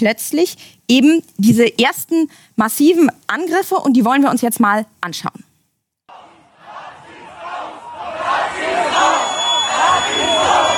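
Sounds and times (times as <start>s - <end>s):
speech: 0.0s - 5.4s
marching crowd of neo-Nazis shouting and chanting: 6.1s - 10.7s.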